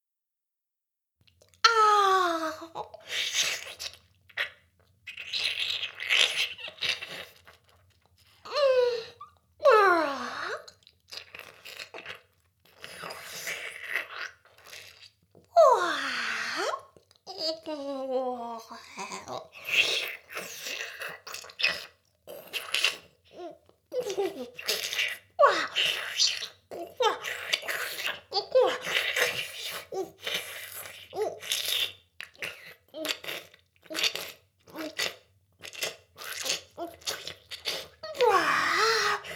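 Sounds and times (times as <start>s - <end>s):
oral sex sounds: 1.5s - 39.3s.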